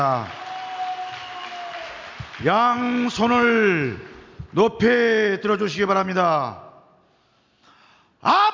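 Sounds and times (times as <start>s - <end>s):
speech: 0.0s - 0.4s, 2.4s - 6.6s, 8.2s - 8.4s
congregation clapping in thanks after a sermon: 0.0s - 4.8s.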